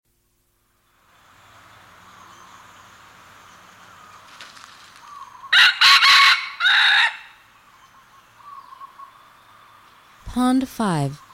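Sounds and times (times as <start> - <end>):
faint bird calls: 1.0 - 5.8, 6.4 - 11.3
red junglefowl crowing: 5.2 - 7.5
speech: 10.4 - 11.2.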